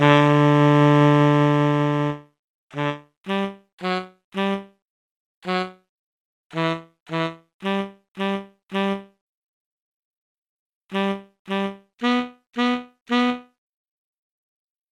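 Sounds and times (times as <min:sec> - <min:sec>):
tenor saxophone: 0:00.0 - 0:04.8, 0:05.4 - 0:05.9, 0:06.5 - 0:09.2, 0:10.9 - 0:13.6.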